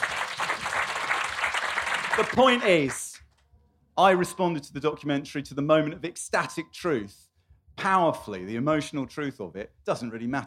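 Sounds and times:
audience applause: 0:00.0 - 0:03.1
speech: 0:02.2 - 0:03.0, 0:04.0 - 0:10.4.

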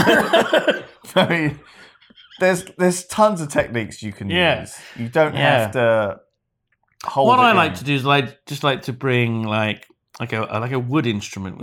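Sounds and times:
loud cough: 0:00.0 - 0:01.1
speech: 0:00.0 - 0:01.8, 0:02.4 - 0:06.2, 0:07.0 - 0:11.6
laughter: 0:00.0 - 0:02.8.

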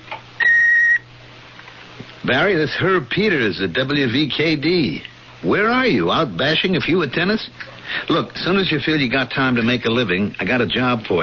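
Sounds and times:
answering machine beep: 0:00.4 - 0:01.0
speech: 0:02.3 - 0:11.2.

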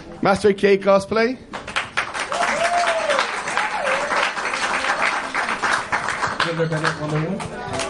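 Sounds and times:
speech: 0:00.2 - 0:01.6, 0:06.5 - 0:07.8
crowd applause: 0:01.6 - 0:07.8
whoops and cheering voices: 0:02.3 - 0:04.4.

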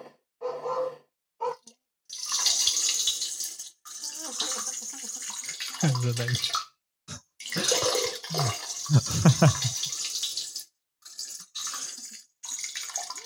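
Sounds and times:
trickling running water: 0:02.1 - 0:13.2
speech: 0:05.8 - 0:06.6, 0:08.3 - 0:09.7
short laugh: 0:07.6 - 0:09.8.

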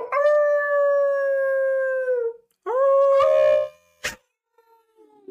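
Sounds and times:
dog howling, yipping and whining: 0:00.0 - 0:03.8.

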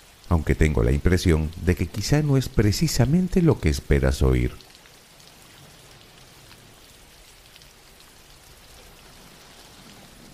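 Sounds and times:
steady rain falling: 0:00.0 - 0:10.3
speech: 0:00.3 - 0:04.7.

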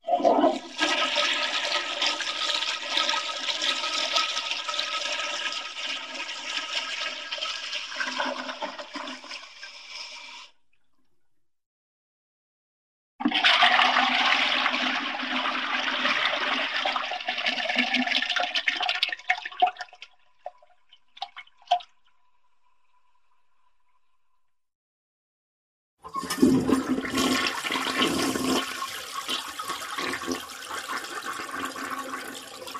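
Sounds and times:
toilet flushing: 0:00.0 - 0:10.6, 0:13.2 - 0:20.0, 0:26.0 - 0:32.7.

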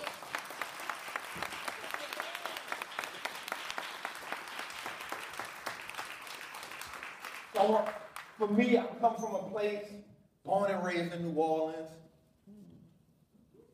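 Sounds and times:
audience clapping: 0:00.0 - 0:08.6
speech: 0:07.6 - 0:12.0.

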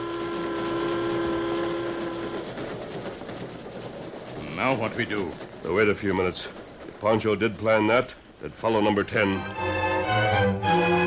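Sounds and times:
multi-tone train horn chord: 0:00.0 - 0:02.6, 0:09.4 - 0:11.0
train cars rumbling: 0:00.0 - 0:11.0
speech: 0:04.6 - 0:09.8.

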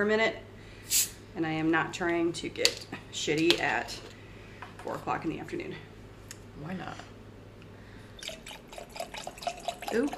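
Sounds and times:
speech: 0:00.0 - 0:04.1, 0:04.8 - 0:05.9, 0:06.6 - 0:07.1, 0:09.9 - 0:10.1
liquid pouring into a glass: 0:08.2 - 0:10.1.

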